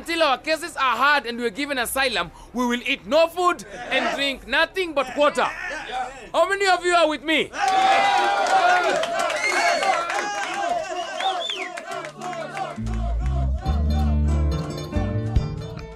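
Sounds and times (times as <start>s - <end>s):
speech: 0.0s - 5.6s, 6.2s - 9.4s
large indoor crowd cheering and shouting in detention center canteen: 7.5s - 14.5s
scattered clapping: 7.6s - 13.9s.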